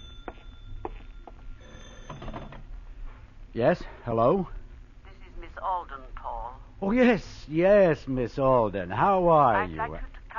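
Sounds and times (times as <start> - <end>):
telephone bell ringing: 0.0 - 2.6
speech: 3.6 - 4.6, 6.8 - 10.1.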